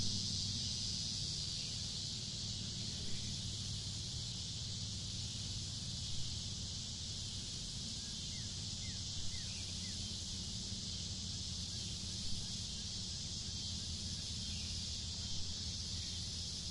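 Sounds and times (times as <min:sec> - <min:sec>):
cicadas humming in the woods: 0:00.0 - 0:16.7.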